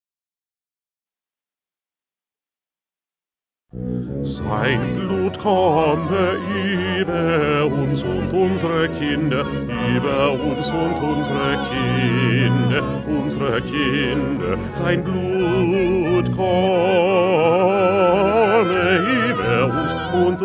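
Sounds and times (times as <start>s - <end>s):
bass: 3.7s - 20.4s.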